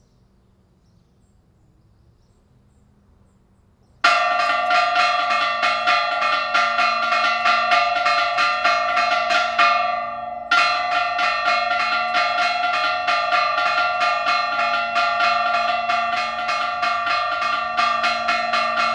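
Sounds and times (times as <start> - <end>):
bells ringing at LaCorrada: 4.0 - 18.9.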